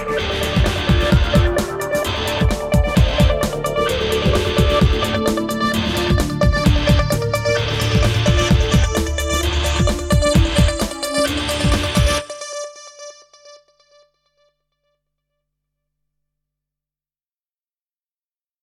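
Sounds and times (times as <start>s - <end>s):
karaoke singing: 0.0s - 12.7s.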